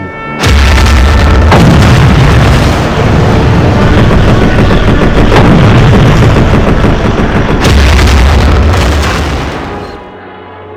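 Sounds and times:
aerial bombardment explosions: 0.4 - 10.1
anti-aircraft fire: 0.4 - 10.1.

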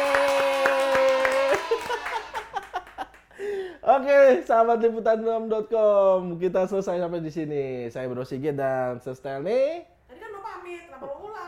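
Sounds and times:
hands clapping: 0.0 - 3.4
speech: 4.0 - 9.9.

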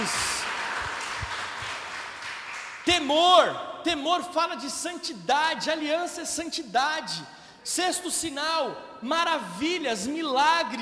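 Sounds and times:
audience applause: 0.0 - 2.8
speech: 3.0 - 10.8.

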